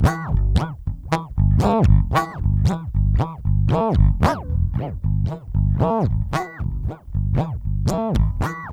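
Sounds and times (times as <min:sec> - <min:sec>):
bass loops: 0:00.0 - 0:08.7.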